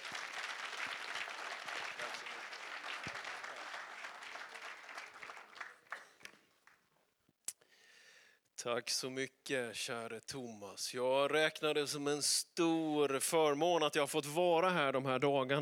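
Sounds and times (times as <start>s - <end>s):
audience applause: 0.0s - 6.8s
speech: 8.6s - 15.5s.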